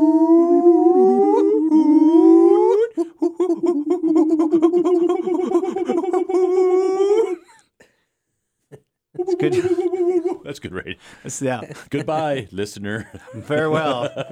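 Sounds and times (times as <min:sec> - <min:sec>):
person imitating howler monkey calls: 0:00.0 - 0:07.5, 0:09.2 - 0:10.5
laughter: 0:02.8 - 0:06.9, 0:09.2 - 0:14.2
speech: 0:11.4 - 0:14.2.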